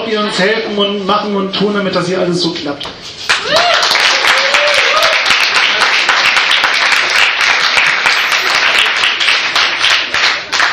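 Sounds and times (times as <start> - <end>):
speech: 0.1 - 3.6
audience applause: 3.3 - 10.7.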